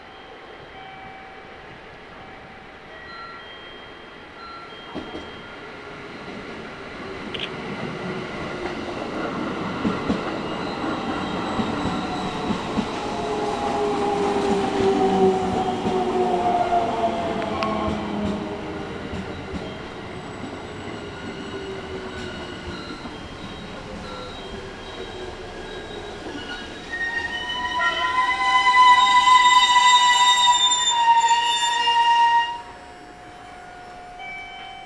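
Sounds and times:
train rolling into station: 4.2 - 34.8
thin metallic squeals and whines: 20.8 - 34.8.

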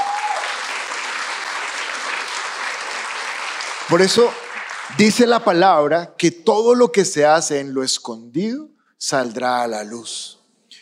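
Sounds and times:
crowd applause: 0.0 - 5.4
speech: 3.9 - 10.4.

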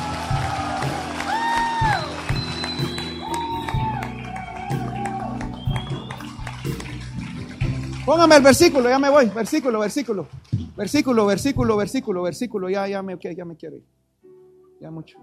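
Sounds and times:
loud applause: 0.0 - 11.1
speech: 8.1 - 14.0, 14.8 - 15.2.

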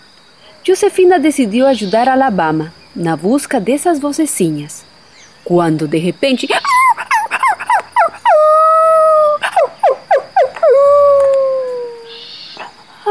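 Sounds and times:
speech: 0.7 - 4.8, 5.4 - 6.8
dog crying, yelping and whining: 6.5 - 12.8.

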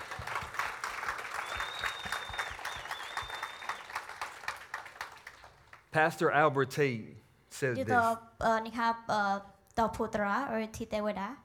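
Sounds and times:
round of applause: 0.0 - 6.0
speech: 6.0 - 11.4.

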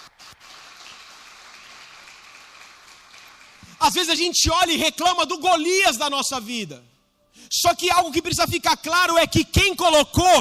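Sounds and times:
audience applause: 0.0 - 3.8
speech: 3.8 - 6.9, 7.5 - 10.3.

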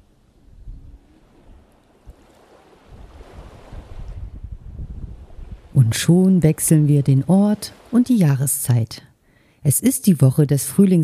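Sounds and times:
wind gusts buffeting the microphone: 0.0 - 6.2
sea waves on a sandy beach: 0.0 - 8.6
speech: 5.9 - 11.0.

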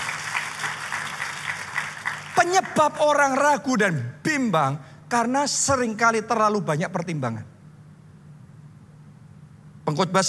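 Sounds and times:
audience applause: 0.0 - 2.7
speech: 2.4 - 7.5, 9.9 - 10.2.

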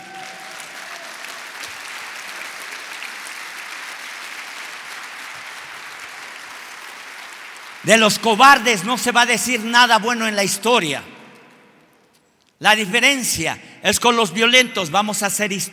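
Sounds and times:
audience applauding loudly: 0.0 - 8.9
speech: 7.8 - 11.1, 12.6 - 15.7.

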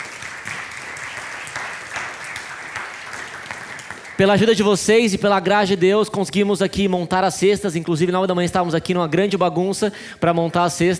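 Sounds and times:
audience applause: 0.0 - 4.7
speech: 4.2 - 10.9.

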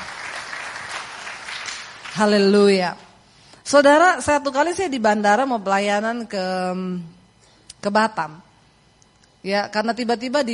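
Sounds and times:
audience applause: 0.0 - 2.2
speech: 2.2 - 3.1, 3.7 - 7.2, 7.8 - 8.5, 9.4 - 10.5.

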